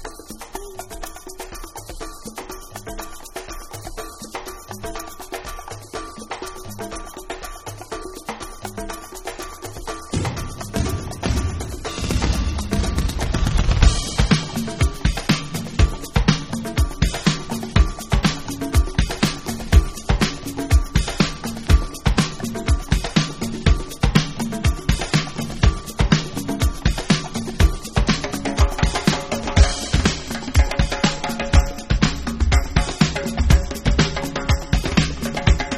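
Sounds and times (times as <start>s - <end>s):
dub music: 10.0s - 35.7s.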